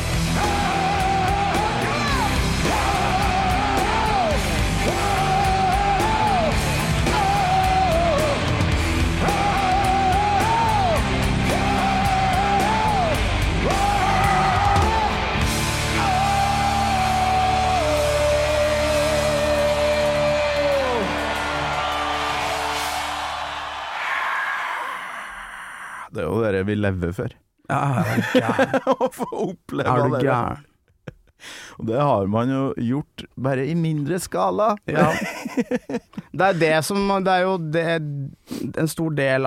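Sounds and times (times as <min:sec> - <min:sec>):
huge concert crowd cheering: 0:00.0 - 0:25.6
huge concert crowd singing a chant-like melody in unison: 0:00.4 - 0:19.4
speech: 0:26.7 - 0:30.7, 0:31.4 - 0:39.4
laughter: 0:27.7 - 0:31.4, 0:34.9 - 0:36.8.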